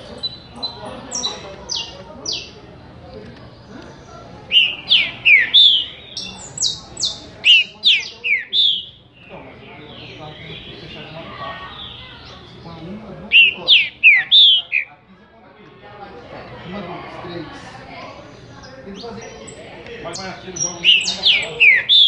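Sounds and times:
green-winged saltator singing rich slurred whistled notes: 4.5s - 11.0s, 13.3s - 14.9s, 20.6s - 22.0s.

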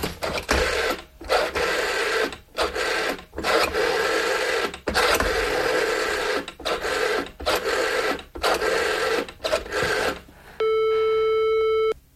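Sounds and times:
telephone being dialed to call an ambulance: 0.2s - 11.2s
steady buzzing telephone ring tone: 10.6s - 12.0s.

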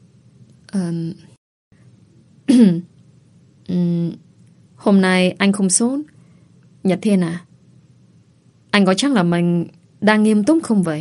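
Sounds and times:
speech: 0.7s - 1.3s, 2.6s - 2.9s, 4.8s - 6.2s, 6.8s - 7.5s, 8.7s - 11.0s
woman clearing her throat: 2.5s - 2.9s.

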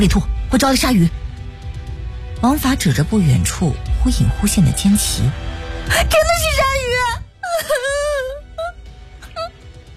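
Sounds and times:
speech: 0.0s - 1.2s, 2.4s - 8.1s
girl on a rubber raft at sea crying loudly: 7.4s - 9.5s.

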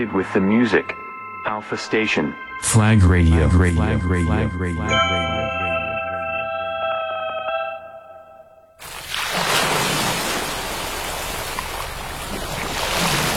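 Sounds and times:
speech: 0.0s - 5.4s
short tonal musical jingle: 0.0s - 8.8s
loud steady ocean waves crashing: 8.8s - 13.3s.

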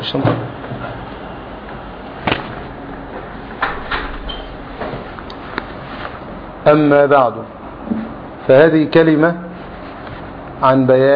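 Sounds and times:
steady hiss: 0.0s - 11.1s
speech: 0.1s - 0.6s, 6.6s - 7.6s, 8.5s - 9.4s, 10.6s - 11.1s
door being handled, clicks and knocks: 3.6s - 4.6s.

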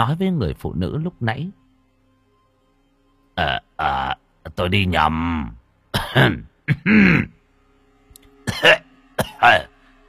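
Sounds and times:
speech: 0.0s - 1.6s, 3.4s - 7.4s, 8.5s - 8.8s, 9.4s - 9.7s
long fit of coughing: 6.0s - 7.4s, 8.5s - 9.7s.

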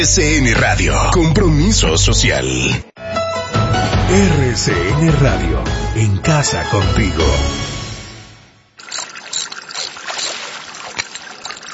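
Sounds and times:
speech: 0.0s - 2.9s, 4.1s - 7.6s
water splashing and trickling from a household water meter under repair: 8.8s - 11.7s.

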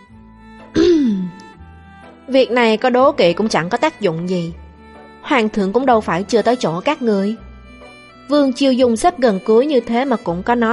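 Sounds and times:
throat clearing: 0.8s - 1.4s
speech: 2.3s - 4.6s, 5.3s - 7.5s, 8.3s - 10.7s.

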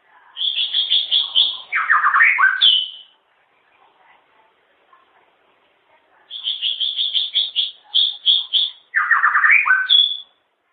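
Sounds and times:
white-rumped shama song: 0.4s - 3.8s, 6.3s - 10.4s.

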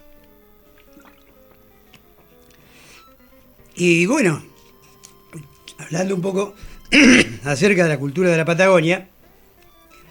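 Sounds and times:
water pouring into a glass: 0.7s - 1.4s
speech: 3.8s - 4.5s, 5.3s - 9.1s.

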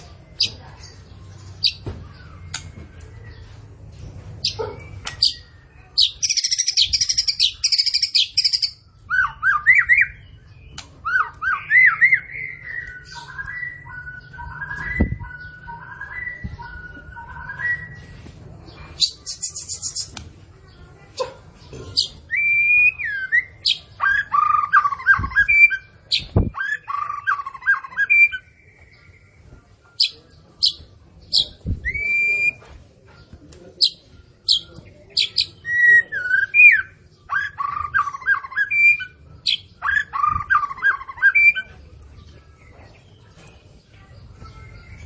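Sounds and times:
white-rumped shama singing whistled song: 4.4s - 18.2s, 22.3s - 32.7s, 33.8s - 41.8s.

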